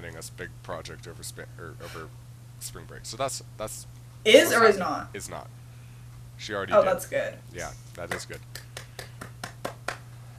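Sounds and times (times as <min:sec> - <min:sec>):
speech: 0:00.1 - 0:05.6, 0:06.4 - 0:08.6
hand clap: 0:08.0 - 0:10.2.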